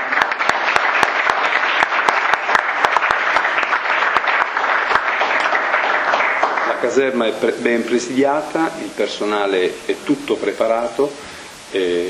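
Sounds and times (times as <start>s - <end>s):
applause: 0.0s - 7.3s
speech: 6.8s - 12.0s.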